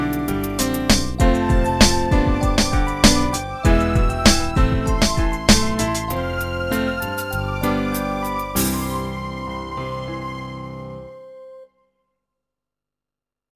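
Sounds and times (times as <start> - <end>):
TV ident music: 0.0 - 10.1.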